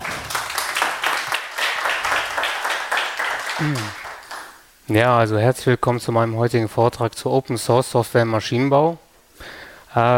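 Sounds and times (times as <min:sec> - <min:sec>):
audience applause: 0:00.0 - 0:04.6
speech: 0:03.6 - 0:04.0, 0:04.9 - 0:10.1.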